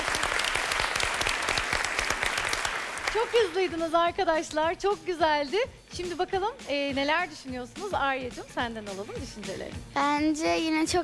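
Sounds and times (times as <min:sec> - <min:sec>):
crowd clapping: 0:00.0 - 0:03.8
speech: 0:03.2 - 0:11.0.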